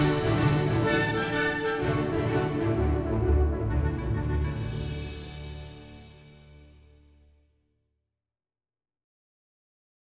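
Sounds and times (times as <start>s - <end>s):
bold heroic background music: 0.0s - 7.0s.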